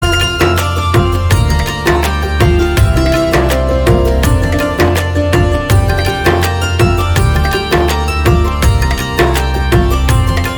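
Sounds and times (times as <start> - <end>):
instrumental ringtone: 0.0 - 10.5.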